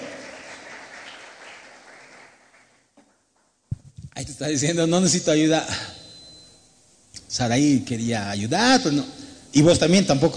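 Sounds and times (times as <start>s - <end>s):
audience applauding loudly: 0.0s - 2.8s
speech: 4.2s - 6.0s, 7.4s - 10.3s.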